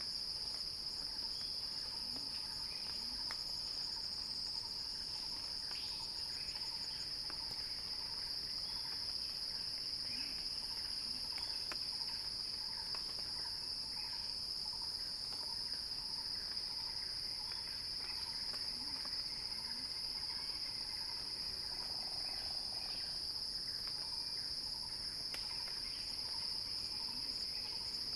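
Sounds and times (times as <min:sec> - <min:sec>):
cicada chorus buzzing: 0:00.0 - 0:28.1.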